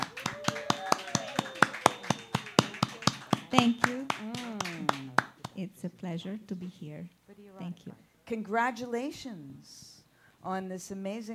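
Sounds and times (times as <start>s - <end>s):
hand clapping to welcome a guest speaker at a book launch: 0.0s - 5.6s
speech: 3.5s - 4.6s, 5.6s - 11.3s.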